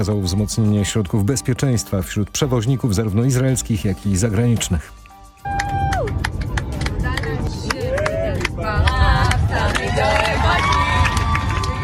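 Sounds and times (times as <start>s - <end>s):
speech: 0.0s - 5.8s
airplane passengers cheering and whistling: 5.4s - 6.2s, 9.5s - 11.8s
airplane passengers clapping: 5.4s - 11.8s.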